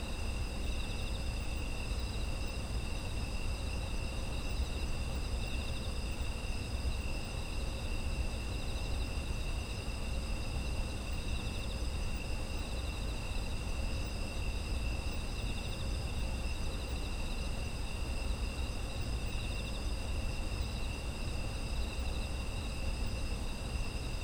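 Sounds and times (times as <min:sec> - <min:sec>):
insect chorus trilling: 0:00.0 - 0:24.2.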